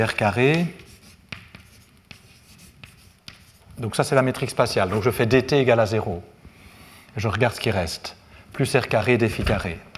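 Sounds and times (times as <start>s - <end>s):
speech: 0.0s - 0.8s, 3.8s - 6.4s, 7.2s - 9.9s
handwriting strokes writing out an equation: 0.3s - 3.8s.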